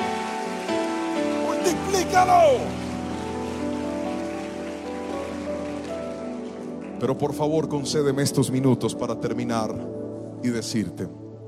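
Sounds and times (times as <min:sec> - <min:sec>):
audience applause: 0:00.0 - 0:07.4
speech: 0:01.7 - 0:02.8, 0:07.0 - 0:11.2.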